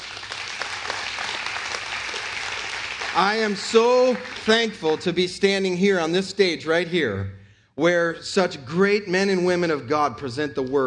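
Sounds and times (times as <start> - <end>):
audience applauding at a church gathering: 0.0 - 5.5
speech: 3.2 - 10.8.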